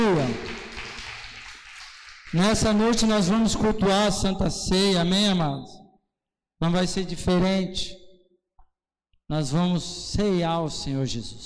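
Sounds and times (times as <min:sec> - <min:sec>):
audience applauding: 0:00.0 - 0:03.4
speech: 0:00.1 - 0:00.5, 0:02.3 - 0:05.8, 0:06.6 - 0:08.0, 0:09.3 - 0:11.4.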